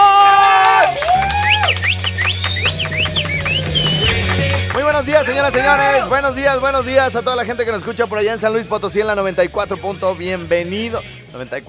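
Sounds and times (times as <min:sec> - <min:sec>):
audience applause: 0:00.0 - 0:06.1
speech: 0:05.4 - 0:11.6.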